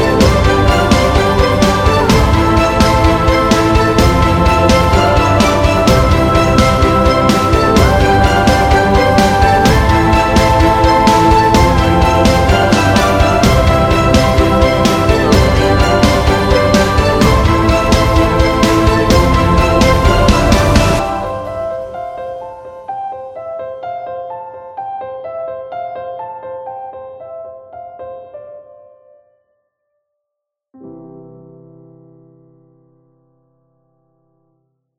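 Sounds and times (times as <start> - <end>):
inspirational cinematic music: 0.0 - 23.5.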